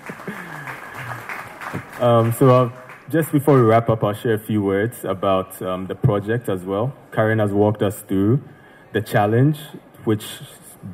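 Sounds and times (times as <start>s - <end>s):
audience applause: 0.0s - 3.7s
speech: 2.0s - 10.9s.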